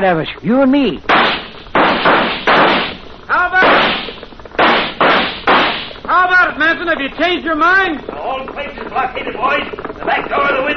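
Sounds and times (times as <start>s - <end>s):
speech: 0.0s - 1.4s, 6.2s - 10.7s
gunshots in radio drama: 1.1s - 6.1s.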